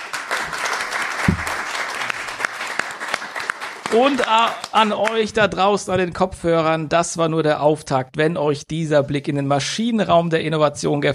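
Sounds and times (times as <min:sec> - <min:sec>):
audience applause: 0:00.0 - 0:05.3
speech: 0:03.9 - 0:11.1.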